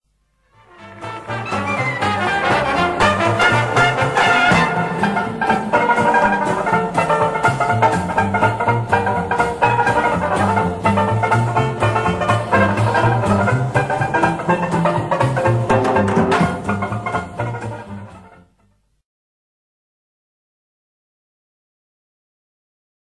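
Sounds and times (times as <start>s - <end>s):
banjo: 0.6s - 18.6s.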